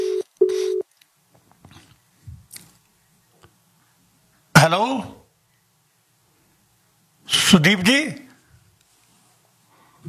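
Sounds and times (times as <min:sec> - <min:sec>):
telephone dialing tones: 0:00.0 - 0:00.9
speech: 0:04.6 - 0:05.2, 0:07.5 - 0:08.2.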